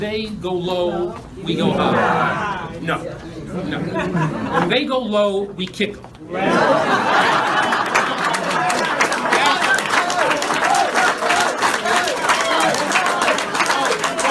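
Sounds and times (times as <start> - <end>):
speech: 0.0 - 7.6
laughter: 1.5 - 2.7, 3.6 - 4.8, 6.3 - 14.2
audience clapping: 6.9 - 14.2.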